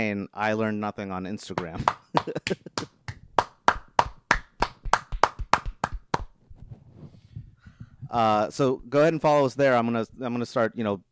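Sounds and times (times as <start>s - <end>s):
speech: 0.0s - 2.9s, 8.1s - 11.0s
hosts clapping: 1.6s - 6.3s.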